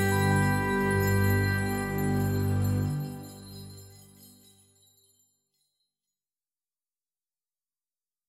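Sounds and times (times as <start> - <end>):
choir singing: 0.0 - 3.3.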